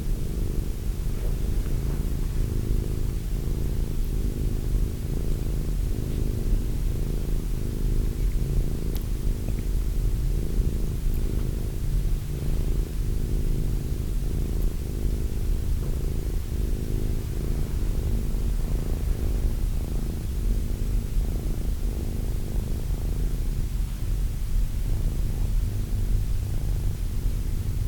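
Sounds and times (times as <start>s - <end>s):
domestic cat purring: 0.0s - 27.8s
hiss: 0.0s - 27.8s.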